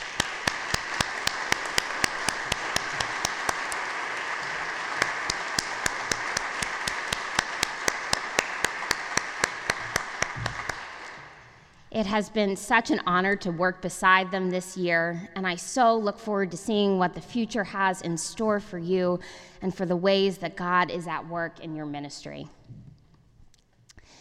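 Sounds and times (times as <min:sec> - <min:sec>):
audience applause: 0:00.0 - 0:11.4
speech: 0:12.0 - 0:22.6.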